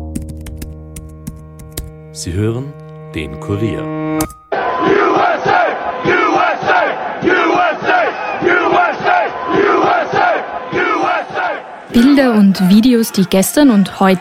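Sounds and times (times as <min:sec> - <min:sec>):
speech: 0:02.2 - 0:05.5, 0:11.9 - 0:14.2
militant crowd storming the Capitol: 0:04.5 - 0:14.2.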